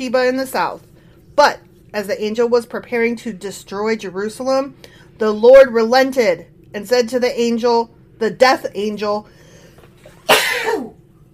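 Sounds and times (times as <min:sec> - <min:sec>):
speech: 0:00.0 - 0:09.4
sneeze: 0:10.2 - 0:11.0.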